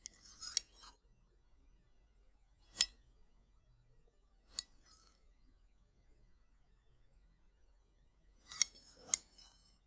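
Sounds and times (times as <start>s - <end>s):
knife moving during food preparation: 0.1s - 0.9s, 8.5s - 9.5s.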